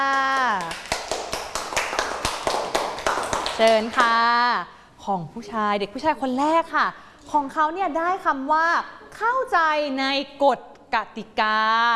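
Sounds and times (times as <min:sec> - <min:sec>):
small group clapping: 0:00.0 - 0:04.3
speech: 0:03.6 - 0:11.9.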